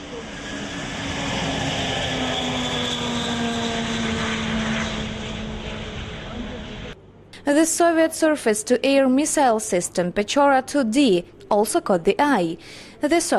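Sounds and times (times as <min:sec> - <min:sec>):
engine roar of Maria, the world's biggest carrier aircraft, at Kyiv air show: 0:00.0 - 0:07.3
speech: 0:07.4 - 0:13.3.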